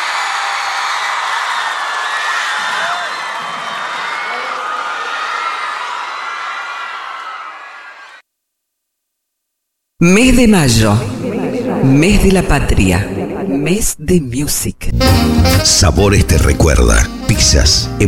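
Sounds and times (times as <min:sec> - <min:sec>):
audience applause and cheers for a band: 0:00.0 - 0:08.2
speech: 0:10.0 - 0:11.1, 0:11.8 - 0:18.0.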